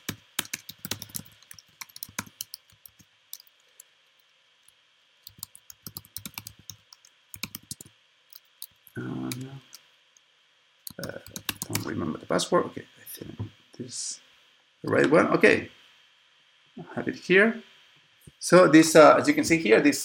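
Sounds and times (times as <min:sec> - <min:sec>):
typing a name on a computer keyboard: 0:00.0 - 0:03.9, 0:05.2 - 0:09.5, 0:10.9 - 0:11.9
speech: 0:11.9 - 0:14.2, 0:14.8 - 0:15.8, 0:17.0 - 0:17.7, 0:18.4 - 0:20.0.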